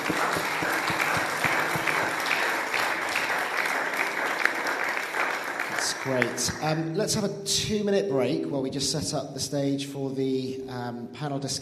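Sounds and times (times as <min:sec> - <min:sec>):
audience applause: 0:00.0 - 0:06.7
speech: 0:00.1 - 0:00.5, 0:06.0 - 0:11.6.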